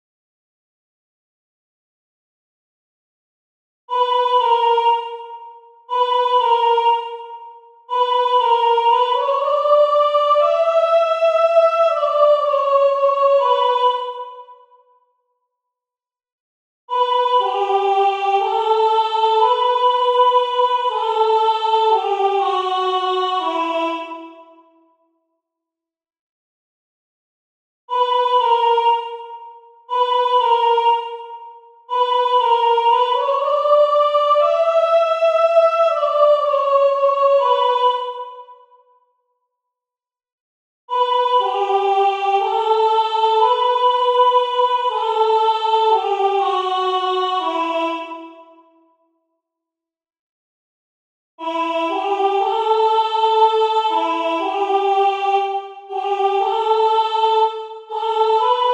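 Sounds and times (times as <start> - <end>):
soprano singing: 3.9 - 14.5, 16.9 - 24.5, 27.9 - 38.5, 40.9 - 48.5, 51.4 - 58.7.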